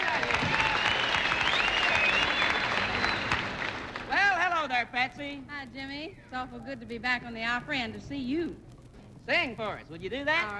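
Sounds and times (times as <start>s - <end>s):
audience applause welcoming a guest star at the Grand Ole Opry: 0.0s - 4.4s
speech: 5.0s - 8.7s, 9.3s - 10.5s.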